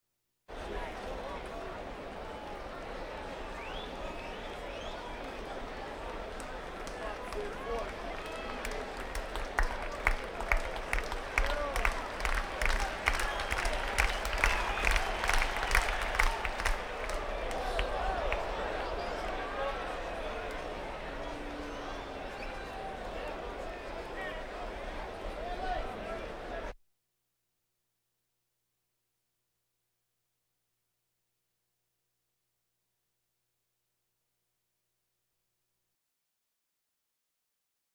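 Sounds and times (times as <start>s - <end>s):
crowds: 0.5s - 26.8s.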